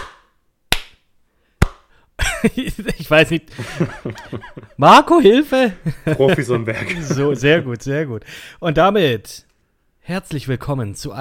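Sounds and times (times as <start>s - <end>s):
hand clap: 0.0s - 1.0s, 1.6s - 1.9s
laughter: 2.2s - 5.0s, 5.6s - 7.9s
speech: 2.4s - 11.1s.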